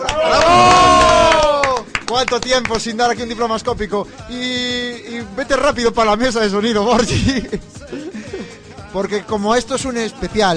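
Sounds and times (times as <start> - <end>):
audience applause and cheering: 0.0 - 2.8
speech: 2.2 - 7.7, 8.9 - 10.5
laughter: 6.9 - 8.6.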